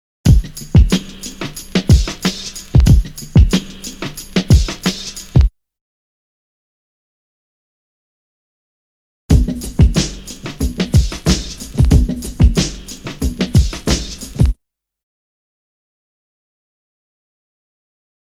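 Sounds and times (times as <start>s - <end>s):
drum loop: 0.3s - 5.5s, 9.3s - 14.6s.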